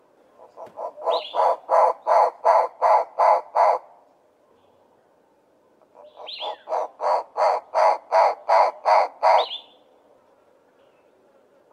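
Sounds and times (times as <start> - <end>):
Knysna turaco calling: 0.3 - 4.0, 5.8 - 10.0.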